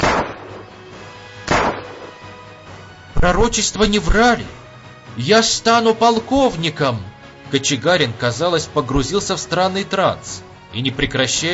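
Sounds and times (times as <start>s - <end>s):
gunshots, return fire: 0.0s - 0.8s, 1.4s - 2.4s
speech: 3.2s - 4.6s, 5.2s - 11.5s.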